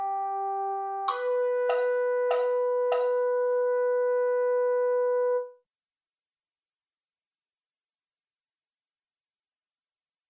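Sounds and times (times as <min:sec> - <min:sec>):
MIDI mellophone: 0:00.0 - 0:05.6.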